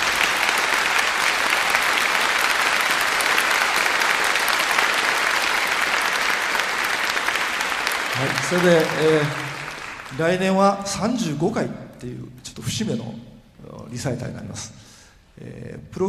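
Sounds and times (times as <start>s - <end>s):
audience applause: 0.0s - 11.7s
speech: 8.5s - 9.4s, 10.1s - 13.3s, 13.9s - 14.8s, 15.4s - 16.0s.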